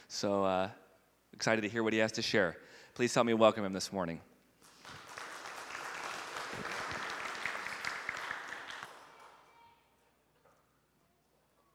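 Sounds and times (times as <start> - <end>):
speech: 0.1 - 4.3
round of applause: 4.6 - 9.8.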